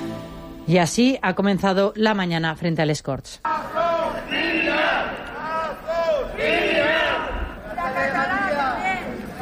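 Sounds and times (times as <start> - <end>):
speech: 0.7 - 3.7
protest crowd shouting: 3.5 - 9.4.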